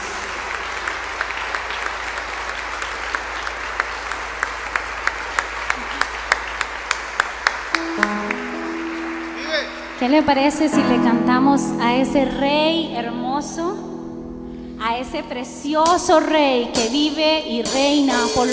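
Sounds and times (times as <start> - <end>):
audience applause: 0.0 - 10.8
speech: 10.0 - 13.8, 14.9 - 18.5.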